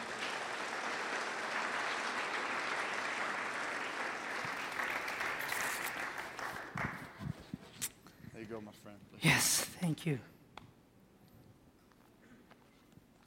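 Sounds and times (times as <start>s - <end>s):
audience applause welcoming guests at an evening event: 0.0s - 7.5s
speech: 8.5s - 10.4s.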